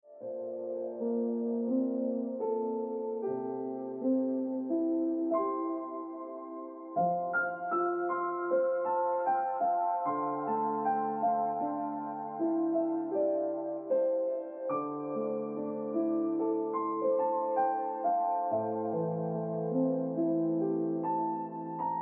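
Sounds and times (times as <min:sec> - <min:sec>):
piano music: 0:00.0 - 0:22.0.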